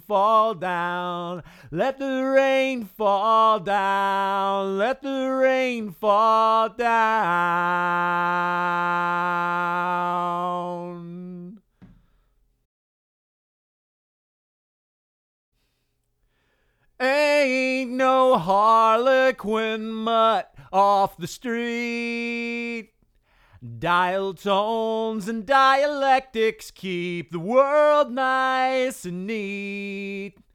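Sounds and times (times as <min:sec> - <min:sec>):
person singing lead vocal: 0:00.0 - 0:11.6, 0:17.0 - 0:22.9, 0:23.6 - 0:30.5.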